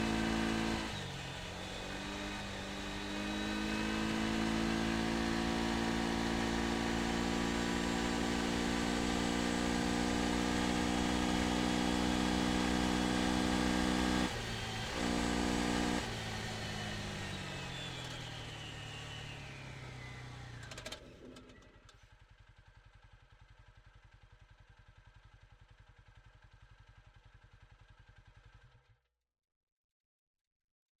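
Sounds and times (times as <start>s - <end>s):
Textron Alterra 500 engine starting, driving and reversing: 0.0s - 22.0s.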